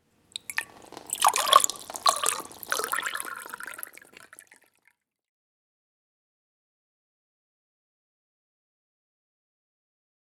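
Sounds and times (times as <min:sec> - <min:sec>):
water spilling from glass: 0:00.3 - 0:04.8.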